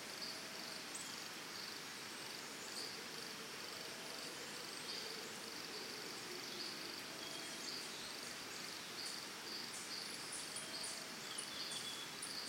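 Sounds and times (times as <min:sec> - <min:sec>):
crickets chirping in Costa Rica in the early morning: 0:00.0 - 0:12.4
birds singing in Costa Rica in the early morning: 0:06.4 - 0:12.4.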